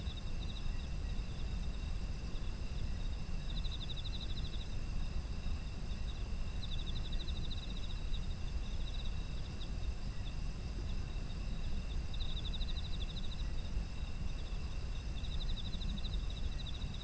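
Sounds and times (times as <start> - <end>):
autumn insects chirping: 0.0 - 17.0.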